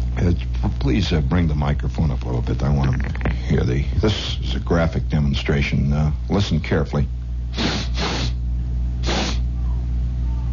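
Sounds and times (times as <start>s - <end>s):
steady low hum: 0.0s - 10.5s
speech: 0.3s - 7.9s
person sniffing the air through the nose: 7.5s - 8.4s, 9.0s - 9.5s.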